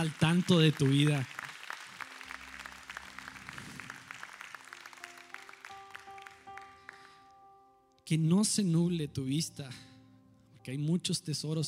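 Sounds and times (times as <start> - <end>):
speech: 0.0 - 1.4, 8.1 - 9.9, 10.6 - 11.6
audience applause: 0.0 - 7.2.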